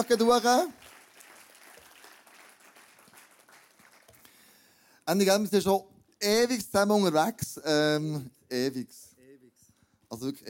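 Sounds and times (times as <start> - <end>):
speech: 0.0 - 0.8, 5.1 - 9.1, 10.1 - 10.4
audience applause: 0.0 - 4.3.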